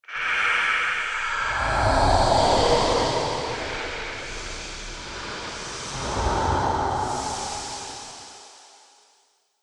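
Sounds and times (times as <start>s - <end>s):
ghost sound effects: 1.0s - 8.5s.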